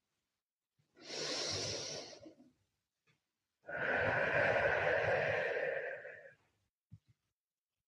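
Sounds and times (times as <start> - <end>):
deep breathing in and out: 1.0 - 2.4, 3.7 - 6.6.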